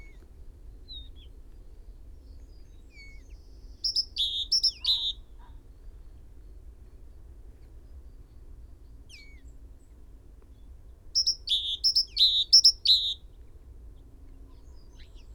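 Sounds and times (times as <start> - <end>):
Great tit two-note calls: 3.9 - 5.2, 11.2 - 13.2.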